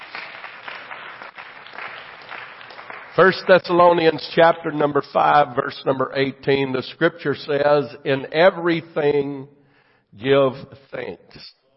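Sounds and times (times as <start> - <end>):
audience hand clapping: 0.0 - 4.7
speech: 3.2 - 11.6.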